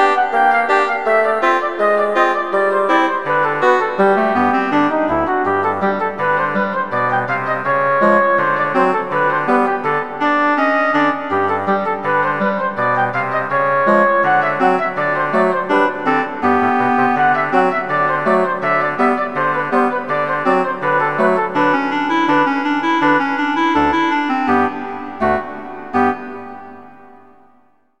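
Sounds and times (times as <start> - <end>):
bassoon: 0.0 - 27.6
clarinet: 0.0 - 27.8
flute: 0.0 - 27.8.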